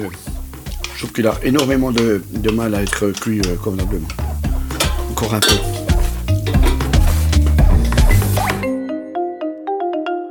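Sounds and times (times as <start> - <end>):
speech: 0.0 - 0.3, 1.0 - 4.3, 5.2 - 5.8
utensil scraping a pan while stirring rice: 0.5 - 8.6.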